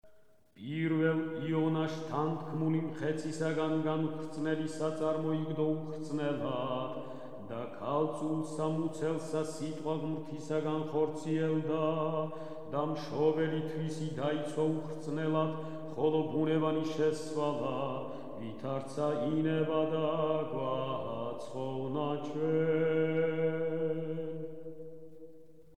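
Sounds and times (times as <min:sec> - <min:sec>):
irmos chant from a canon: 0:00.6 - 0:25.7.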